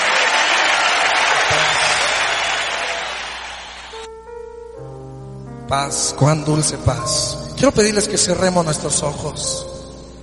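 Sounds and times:
audience applause: 0.0 - 4.1
speech: 5.7 - 9.8.

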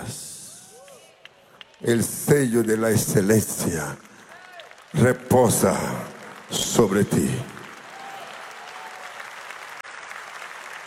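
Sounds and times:
steady audience applause: 0.5 - 10.8
speech: 1.8 - 4.1, 4.9 - 7.6.

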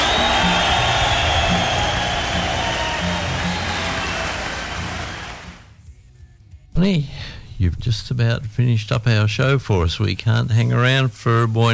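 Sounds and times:
audience cheering and applauding: 0.0 - 5.7
speech: 6.8 - 11.7.

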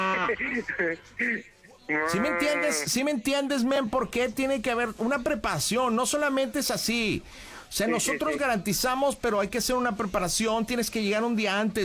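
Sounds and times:
speech: 0.3 - 11.8
person imitating a cow mooing: 1.9 - 2.9.

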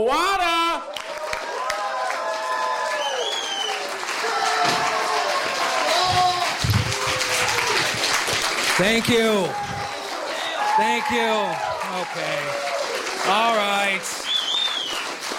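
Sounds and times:
audience applause for headlining comedian: 0.9 - 15.3
speech: 8.8 - 9.6, 10.8 - 14.2.

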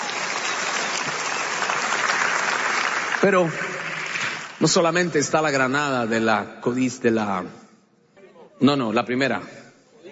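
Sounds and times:
audience applause: 0.0 - 4.8
speech: 3.2 - 3.6, 4.6 - 7.6, 8.6 - 9.6.

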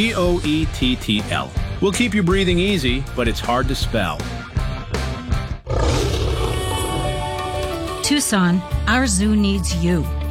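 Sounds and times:
speech: 0.0 - 4.5, 8.0 - 10.2
tiger roaring: 5.6 - 7.8.

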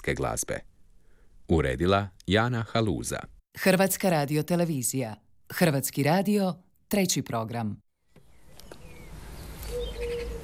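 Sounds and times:
speech: 0.0 - 0.7, 1.5 - 7.8
small birds chirping and whistling in pine trees in front of a terrace at a family home: 8.1 - 10.4.

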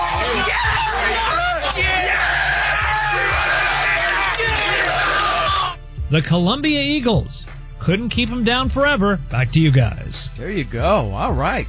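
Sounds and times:
football team and fans yelling and whooping in celebration: 0.0 - 5.8
speech: 6.1 - 11.6.

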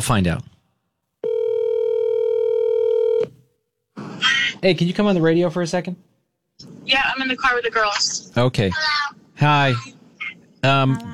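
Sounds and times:
speech: 0.0 - 0.5, 4.6 - 10.0, 10.6 - 11.1
phone ringing: 1.2 - 3.3.

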